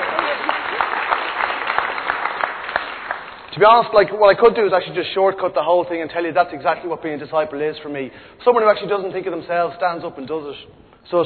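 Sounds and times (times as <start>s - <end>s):
audience applause: 0.0s - 3.5s
speech: 3.6s - 11.2s.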